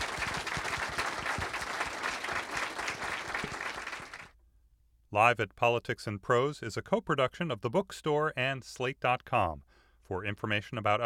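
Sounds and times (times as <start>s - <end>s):
audience applause: 0.0s - 4.3s
speech: 5.2s - 11.0s.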